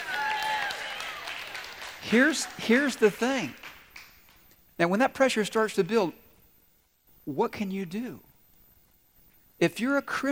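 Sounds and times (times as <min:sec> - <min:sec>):
audience clapping: 0:00.0 - 0:04.5
speech: 0:02.0 - 0:03.7, 0:04.8 - 0:06.2, 0:07.2 - 0:08.3, 0:09.6 - 0:10.3.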